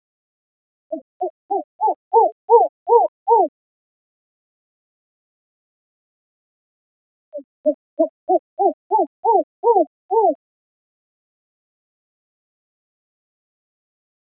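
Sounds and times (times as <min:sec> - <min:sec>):
spectacled owl hooting: 0:00.9 - 0:03.5, 0:07.4 - 0:10.4.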